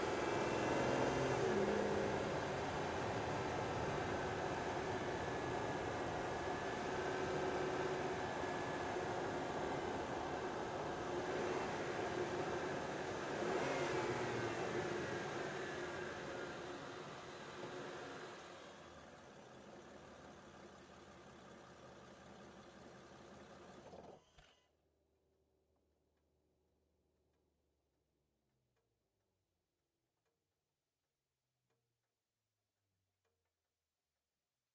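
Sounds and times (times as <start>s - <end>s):
Aston Martin DB9 engine starting: 0.0s - 24.3s.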